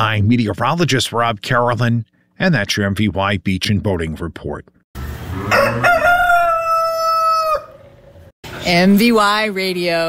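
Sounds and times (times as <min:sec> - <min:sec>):
speech: 0:00.0 - 0:06.0, 0:08.6 - 0:10.0
rooster crowing in a fair barn: 0:05.3 - 0:08.0.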